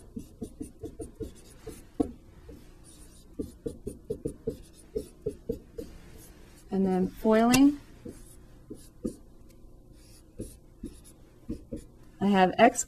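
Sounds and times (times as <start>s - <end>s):
pen hand-writing a math equation: 0.0s - 2.1s, 2.8s - 6.0s, 8.0s - 9.2s, 10.0s - 11.9s
speech: 6.8s - 7.8s, 12.3s - 12.8s.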